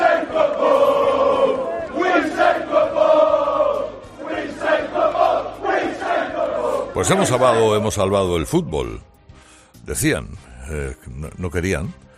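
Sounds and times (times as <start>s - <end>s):
football fans chanting outside stadium: 0.0s - 8.0s
speech: 7.0s - 9.1s, 9.8s - 12.0s.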